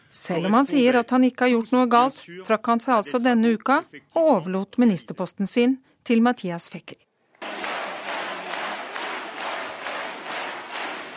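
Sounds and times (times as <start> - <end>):
speech: 0.2 - 7.1
standing ovation applause: 7.4 - 11.1.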